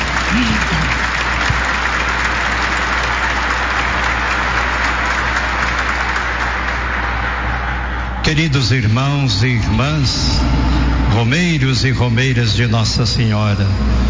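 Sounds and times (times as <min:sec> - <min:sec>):
audience applauding: 0:00.0 - 0:08.7
speech: 0:08.5 - 0:14.0.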